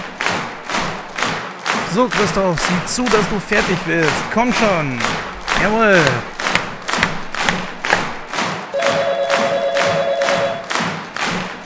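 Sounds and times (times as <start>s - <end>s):
group clapping in a steady rhythmic beat: 0.0s - 11.6s
people cheering: 0.0s - 11.6s
speech: 1.9s - 6.3s
sustained electronic ringing tone: 8.8s - 10.7s.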